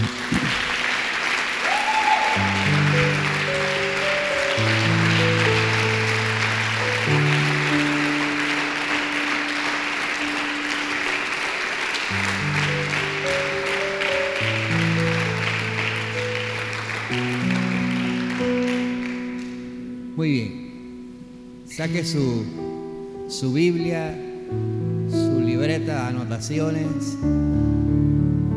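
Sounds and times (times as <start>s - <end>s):
audience applause: 0.0s - 19.6s
speech: 21.8s - 22.6s, 23.4s - 28.4s.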